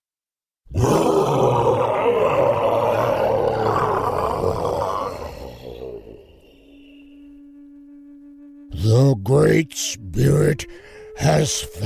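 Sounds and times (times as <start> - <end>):
bear growling loudly: 0.7 - 7.1
speech: 9.3 - 11.8.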